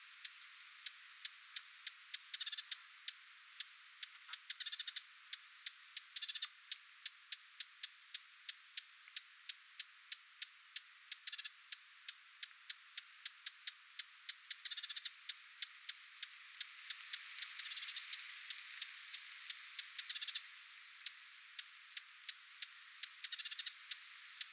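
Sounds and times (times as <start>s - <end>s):
lesser whitethroat alarm clicking calls: 0.2s - 7.4s, 8.1s - 24.5s.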